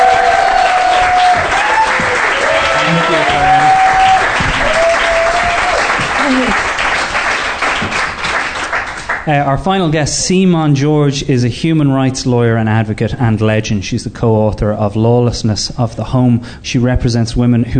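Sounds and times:
scattered cheers: 0:00.0 - 0:06.6
live audience clapping to welcome a comedian: 0:00.0 - 0:09.6
speech: 0:09.3 - 0:17.7.

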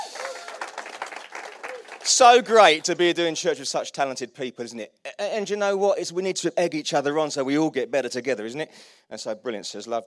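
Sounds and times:
audience applause: 0:00.0 - 0:02.9
speech: 0:02.1 - 0:10.0.

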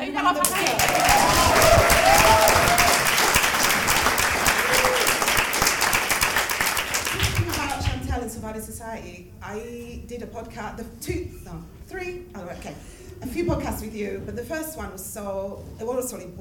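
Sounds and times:
speech: 0:00.2 - 0:00.9, 0:09.6 - 0:11.8, 0:12.6 - 0:16.4
crowd applauding: 0:00.4 - 0:07.9.

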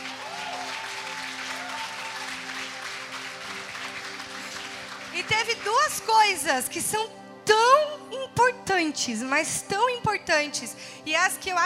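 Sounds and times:
audience applause: 0:00.0 - 0:05.9
speech: 0:05.2 - 0:11.6.

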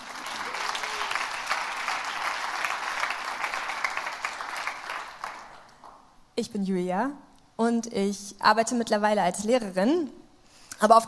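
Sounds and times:
audience applause: 0:00.0 - 0:06.0
speech: 0:06.4 - 0:10.2, 0:10.8 - 0:11.0.

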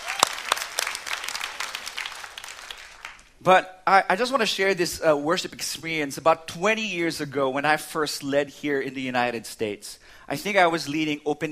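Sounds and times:
audience applause: 0:00.0 - 0:03.3
speech: 0:03.4 - 0:11.4.

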